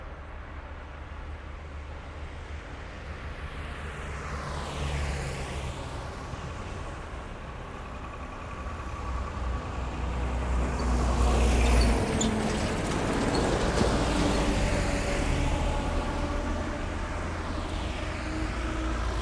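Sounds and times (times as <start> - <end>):
traffic passing by in Meda Milano Italy: 2.5 - 19.2.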